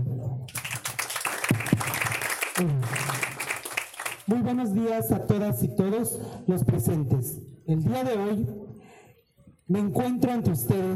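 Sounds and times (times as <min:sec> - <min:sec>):
audience applause: 0:00.5 - 0:04.3
speech: 0:02.6 - 0:03.1, 0:04.3 - 0:08.6, 0:09.7 - 0:10.9.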